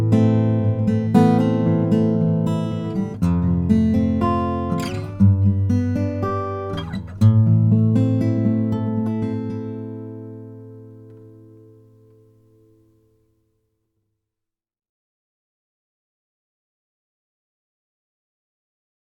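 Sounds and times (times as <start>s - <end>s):
Lowden F50c Honduran rosewood guitar: 0.0s - 13.5s.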